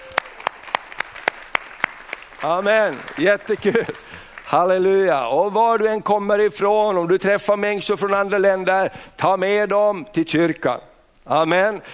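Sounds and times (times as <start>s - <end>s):
audience clapping in a steady rhythm: 0.0s - 5.2s
speech: 2.4s - 11.9s.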